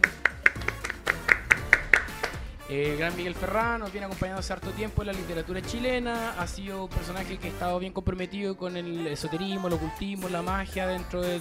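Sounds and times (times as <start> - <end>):
hand claps: 0.0 - 2.6
speech: 2.7 - 11.3.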